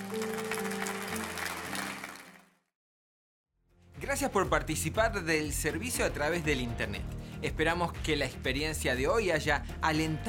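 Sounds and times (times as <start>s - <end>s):
audience clapping: 0.0s - 2.7s
speech: 4.1s - 10.2s.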